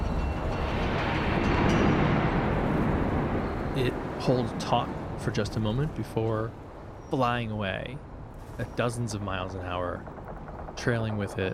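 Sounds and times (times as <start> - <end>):
powerful gale-force wind gust: 0.0 - 11.5
speech: 3.8 - 10.2, 10.8 - 11.5.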